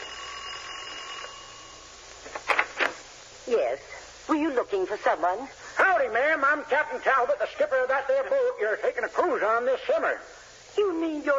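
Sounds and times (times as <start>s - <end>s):
doorbell ringing: 0.0s - 2.0s
quiet hum: 0.0s - 11.3s
speech: 3.5s - 11.3s.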